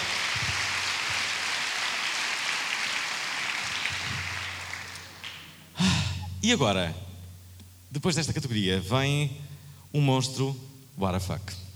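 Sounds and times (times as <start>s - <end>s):
applause for the winner: 0.0s - 5.6s
speech: 6.4s - 7.0s, 7.9s - 11.6s.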